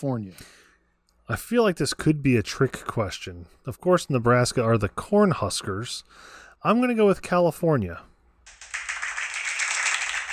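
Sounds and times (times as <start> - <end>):
speech: 0.0 - 0.6, 1.3 - 8.1
hand clapping: 8.5 - 10.3.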